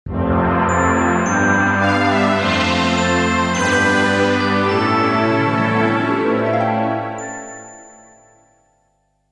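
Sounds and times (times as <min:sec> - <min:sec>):
jingle: 0:00.3 - 0:09.2.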